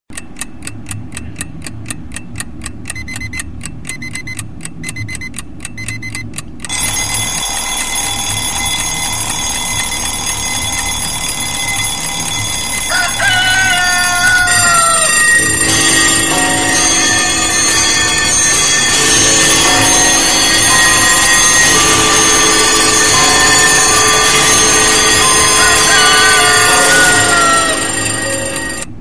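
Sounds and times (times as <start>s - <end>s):
clock: 0.1s - 29.0s.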